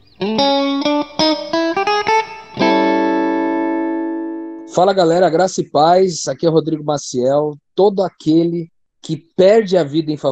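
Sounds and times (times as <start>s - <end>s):
show intro jingle: 0.3s - 4.8s
speech: 4.8s - 10.3s.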